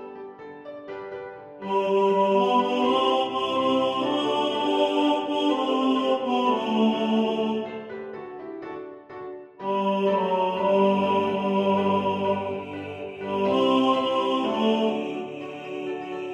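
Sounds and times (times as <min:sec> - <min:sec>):
piano: 0:00.0 - 0:16.3
tenor singing in the foreground: 0:01.6 - 0:08.1, 0:09.6 - 0:16.3.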